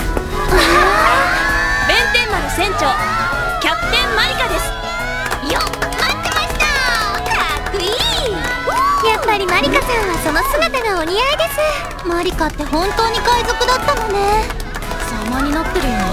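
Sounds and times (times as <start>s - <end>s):
laughter: 0.1s - 16.1s
applause: 3.7s - 16.1s
speech: 9.8s - 14.6s, 15.3s - 16.1s.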